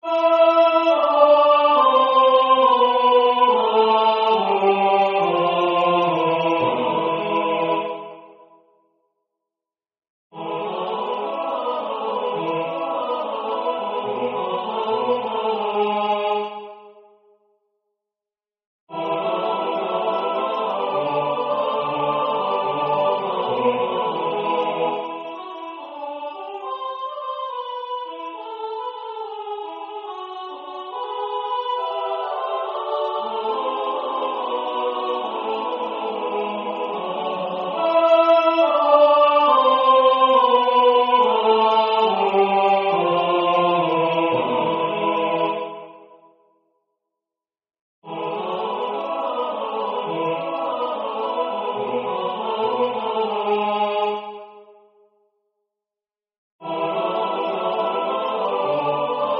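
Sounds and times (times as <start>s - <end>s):
full tutti choir singing: 0.0s - 8.5s, 10.4s - 17.1s, 18.9s - 46.4s, 48.0s - 54.9s, 56.6s - 59.3s.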